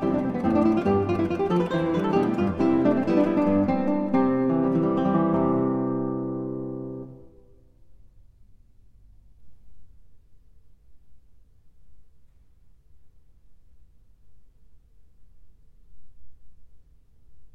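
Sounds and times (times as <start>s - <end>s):
trio sonata allegro: 0.0s - 7.4s.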